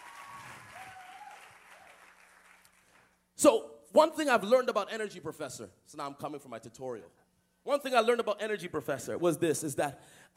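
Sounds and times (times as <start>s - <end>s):
people clapping: 0.0s - 3.2s
speech: 3.4s - 10.3s.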